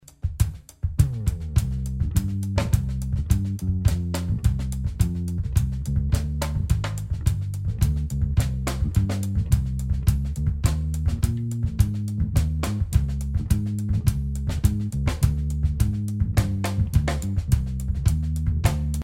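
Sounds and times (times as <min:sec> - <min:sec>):
samba bass: 0:00.0 - 0:19.0.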